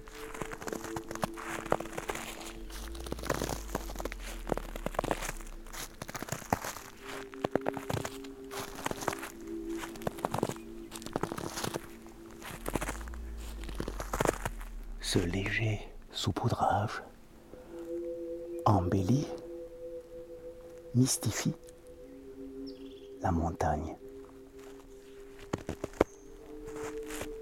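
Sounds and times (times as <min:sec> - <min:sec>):
footsteps crunching through dry dead leaves: 0:00.0 - 0:15.5, 0:24.6 - 0:27.4
low hum: 0:00.0 - 0:27.4
speech: 0:15.1 - 0:17.2, 0:18.7 - 0:19.4, 0:21.0 - 0:21.6, 0:23.2 - 0:24.0.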